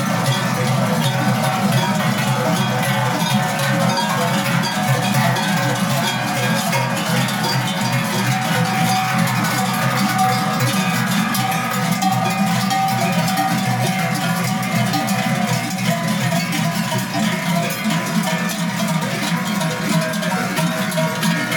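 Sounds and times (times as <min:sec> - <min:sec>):
trychler cowbells ringing: 0:00.0 - 0:21.5.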